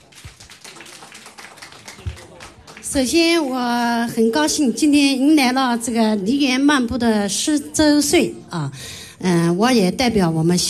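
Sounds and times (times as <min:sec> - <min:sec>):
audience applause welcoming a singer at a traditional Chinese opera gathering: 0:00.0 - 0:03.0
speech: 0:02.9 - 0:10.6.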